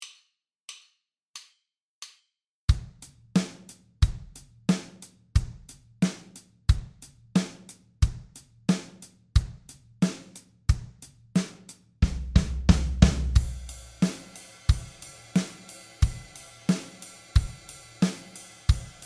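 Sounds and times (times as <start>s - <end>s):
rhythm beat: 2.7s - 19.0s.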